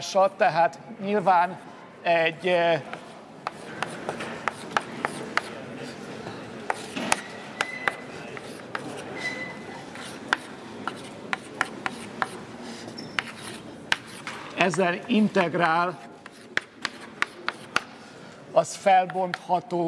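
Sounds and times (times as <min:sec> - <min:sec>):
speech: 0:00.0 - 0:03.0, 0:14.6 - 0:16.1, 0:18.6 - 0:19.8
writing on a board during a mathematics lecture: 0:02.8 - 0:18.0.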